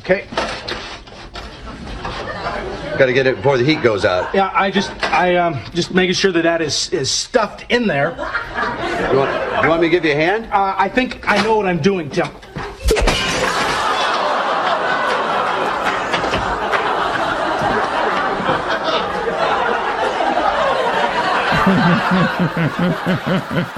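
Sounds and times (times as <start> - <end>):
speech: 0.0 - 0.4, 3.0 - 12.5, 21.7 - 23.7
people laughing and chattering: 1.3 - 5.2, 8.2 - 10.1, 12.3 - 23.7
window glass shattering: 13.0 - 14.0.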